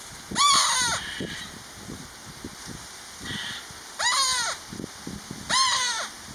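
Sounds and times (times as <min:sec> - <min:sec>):
Cooper's Hawk calling: 0:00.4 - 0:01.5, 0:03.2 - 0:04.6, 0:05.5 - 0:06.1.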